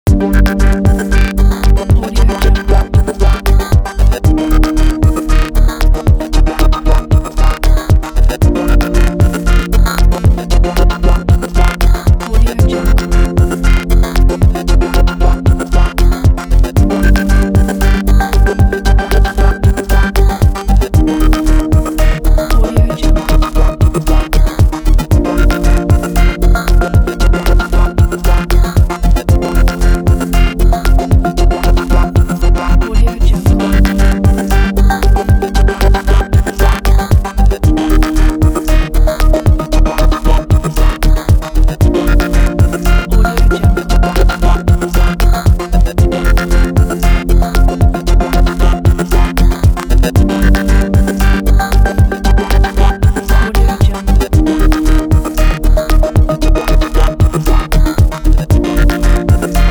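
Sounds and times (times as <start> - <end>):
abstract glitch sound: 0.1 - 59.6.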